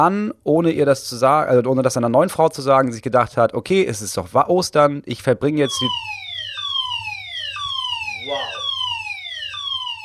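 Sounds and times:
speech: 0.0s - 6.3s
fire alarm wailing: 5.6s - 10.0s
voice murmur: 8.2s - 8.7s.

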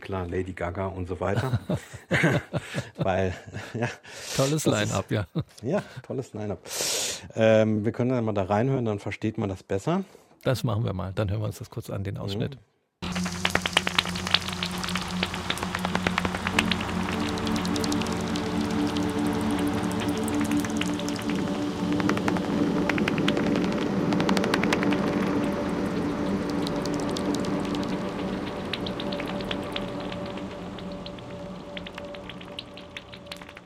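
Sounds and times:
speech: 0.1s - 13.3s
laughter: 1.3s - 4.0s
pipistrelle bat echolocation calls, pitch-lowered: 13.0s - 33.6s.

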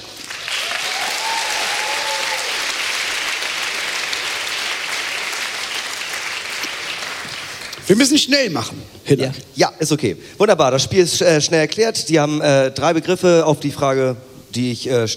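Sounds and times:
roaring audience applause: 0.0s - 7.8s
speech: 7.9s - 15.1s.

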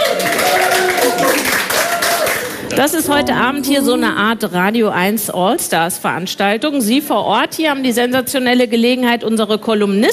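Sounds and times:
audience applause: 0.0s - 3.0s
speech: 2.8s - 10.1s.

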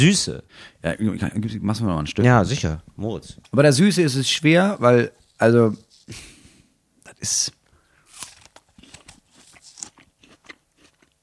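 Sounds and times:
speech: 0.0s - 6.4s, 7.2s - 7.6s
biting into an apple with the skin on: 8.0s - 11.2s
chewing apple: 8.1s - 11.2s.

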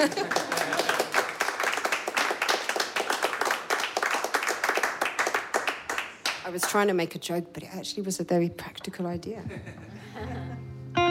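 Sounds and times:
speech: 0.0s - 0.4s, 6.5s - 10.6s
laughter: 0.0s - 1.1s, 9.4s - 10.9s
audience clapping: 0.0s - 6.9s.

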